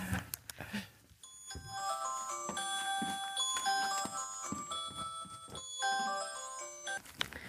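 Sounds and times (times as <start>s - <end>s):
mobile phone ringing: 1.2s - 7.0s.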